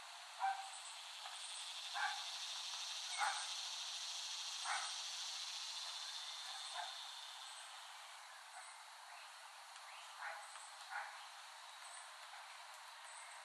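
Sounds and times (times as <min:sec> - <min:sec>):
faint chirps: 0:00.4 - 0:13.4
cicada buzzing: 0:00.7 - 0:07.9.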